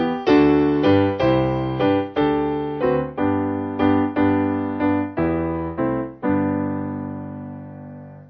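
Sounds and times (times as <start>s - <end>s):
simple piano carol: 0.0s - 8.2s.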